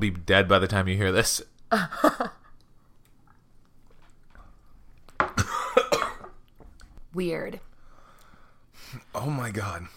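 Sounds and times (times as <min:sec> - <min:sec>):
speech: 0:00.0 - 0:02.3, 0:07.2 - 0:07.7, 0:08.9 - 0:09.9
person coughing and choking after drinking a shot: 0:05.2 - 0:06.4.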